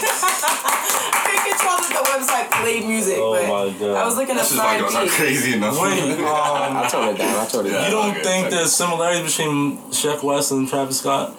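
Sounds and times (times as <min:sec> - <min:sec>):
laughter: 0:00.0 - 0:01.8, 0:05.1 - 0:08.6
people clapping: 0:00.0 - 0:03.0
speech: 0:01.8 - 0:11.3.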